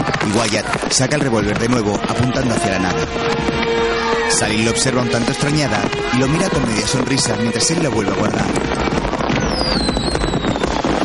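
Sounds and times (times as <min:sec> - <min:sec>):
fireworks exploding during a night celebration: 0:00.0 - 0:11.0
speech: 0:00.4 - 0:09.9
descending firework whistle: 0:09.2 - 0:10.9.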